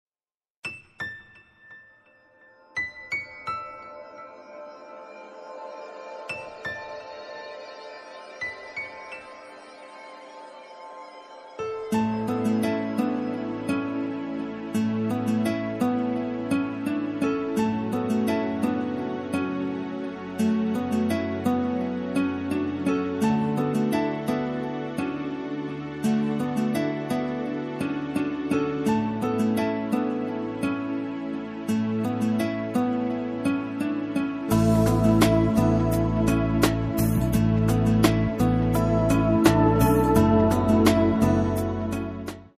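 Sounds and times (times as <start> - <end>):
guitar: 2.5 - 42.5.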